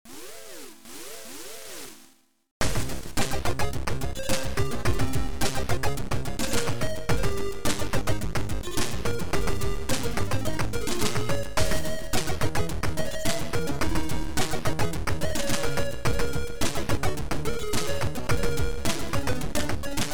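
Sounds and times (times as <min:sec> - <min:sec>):
boss fight music: 0:02.6 - 0:20.1.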